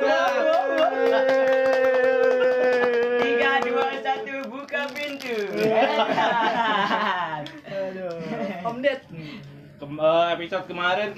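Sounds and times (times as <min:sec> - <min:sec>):
laughter: 0:00.0 - 0:03.6, 0:05.5 - 0:08.9
clapping applause: 0:00.0 - 0:04.5
speech: 0:08.7 - 0:11.1.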